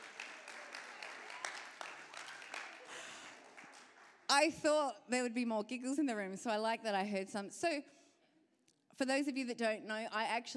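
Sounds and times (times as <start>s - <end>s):
audience applause: 0.0s - 4.3s
speech: 4.3s - 8.0s, 9.0s - 10.5s.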